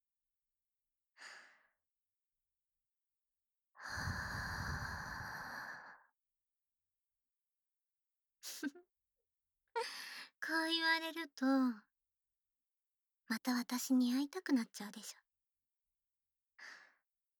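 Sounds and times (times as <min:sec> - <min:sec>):
breathy puffs and sighs: 0:03.8 - 0:06.1
speech: 0:09.8 - 0:11.9, 0:13.3 - 0:15.2.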